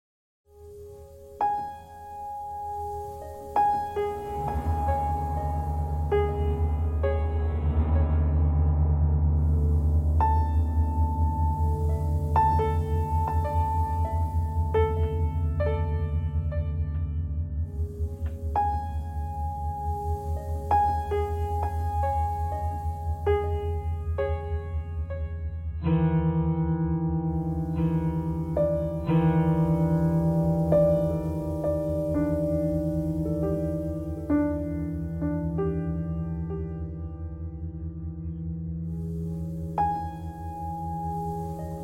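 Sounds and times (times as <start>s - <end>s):
piano thread noise: 0.5s - 41.8s.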